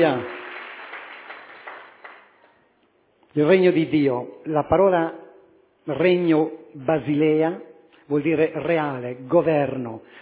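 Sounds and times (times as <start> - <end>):
speech: 0.0 - 0.4, 3.4 - 5.2, 5.8 - 10.1
audience clapping hands: 0.0 - 2.6.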